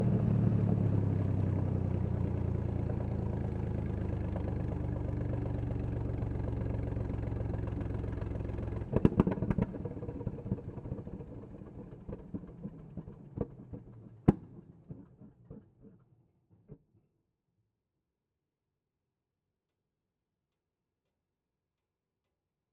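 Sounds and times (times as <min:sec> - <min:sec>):
1938 Char B1 bis tank engine idling, onboard and exhaust: 0:00.2 - 0:12.0.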